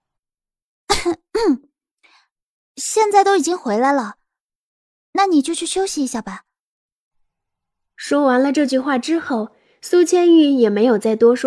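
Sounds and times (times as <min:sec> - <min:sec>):
person coughing: 0:00.9 - 0:01.7
speech: 0:01.0 - 0:01.7, 0:02.8 - 0:04.2, 0:05.2 - 0:06.5, 0:08.0 - 0:11.4.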